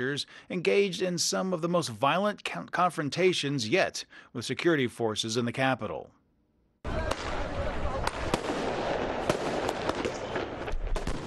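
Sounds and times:
speech: 0.0s - 6.2s
fireworks launched during street clashes: 6.9s - 11.2s.

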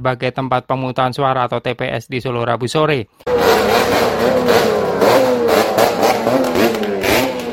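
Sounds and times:
speech: 0.0s - 4.7s
convoy of motorcycle engines revving loudly: 3.3s - 7.5s.

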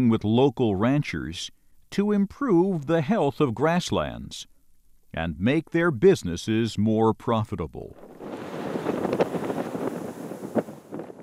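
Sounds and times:
speech: 0.0s - 4.5s, 5.1s - 8.2s
wind blowing through native grasses in Nebraska's Niobrara Valley: 7.9s - 11.2s.

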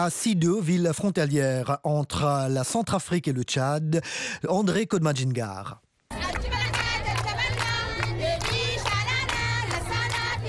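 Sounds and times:
speech: 0.0s - 5.8s
crowd singing a welcome song at a report launch in Sido: 6.1s - 10.4s.

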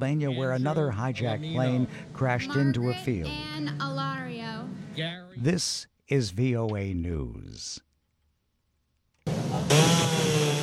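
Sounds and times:
speech: 0.0s - 4.2s, 5.0s - 7.9s
power saw cutting during storm cleanup: 9.3s - 10.6s.

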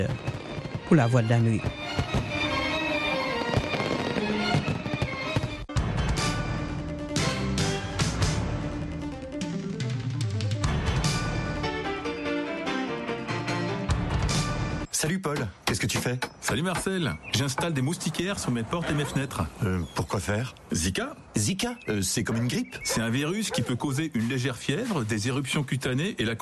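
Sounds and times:
speech: 0.0s - 0.3s, 0.9s - 2.2s, 16.1s - 26.4s
fireworks exploding: 0.0s - 5.7s
loud music: 5.7s - 14.8s.

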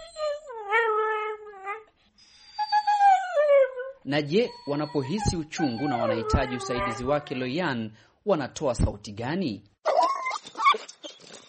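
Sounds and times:
dog whining out of hunger: 0.0s - 7.4s, 9.8s - 11.4s
speech: 4.0s - 9.7s.

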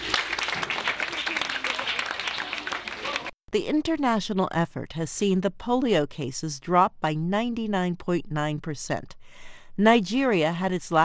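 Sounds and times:
audience clapping: 0.0s - 3.4s
speech: 3.5s - 11.0s.

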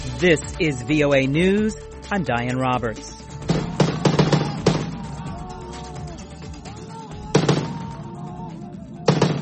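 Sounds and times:
speech: 0.2s - 3.2s
gunfire of Syrian rebels shooting down a government helicopter: 3.5s - 5.1s, 7.3s - 8.0s, 9.1s - 9.4s.

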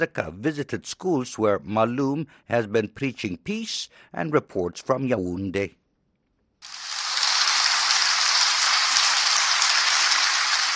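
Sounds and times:
speech: 0.0s - 5.8s
children applauding: 6.7s - 10.7s.

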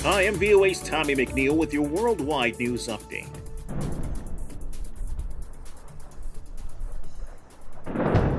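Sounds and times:
speech: 0.3s - 3.9s
explosions in a city: 3.6s - 4.7s, 7.7s - 8.3s.

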